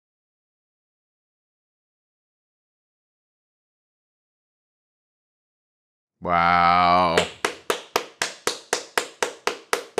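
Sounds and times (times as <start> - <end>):
speech: 6.2 - 7.4
single person clapping hands: 6.8 - 9.9.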